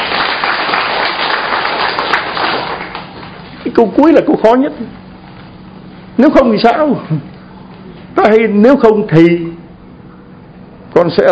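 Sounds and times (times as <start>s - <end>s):
crowd applause: 0.0s - 3.5s
speech: 3.8s - 5.0s, 6.2s - 7.3s, 8.2s - 9.6s, 11.0s - 11.3s.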